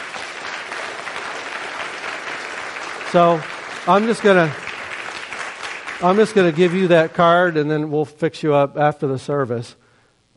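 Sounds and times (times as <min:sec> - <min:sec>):
audience applause: 0:00.0 - 0:07.6
speech: 0:03.1 - 0:04.6, 0:06.0 - 0:09.8.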